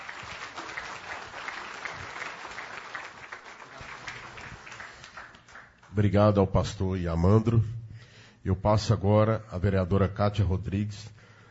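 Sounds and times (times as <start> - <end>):
audience applause: 0.0 - 5.8
speech: 6.0 - 7.8, 8.4 - 11.2.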